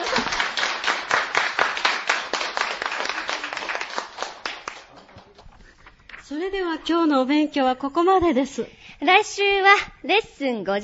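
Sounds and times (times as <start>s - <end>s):
children clapping during a language lesson: 0.0s - 5.4s
speech: 6.4s - 10.8s.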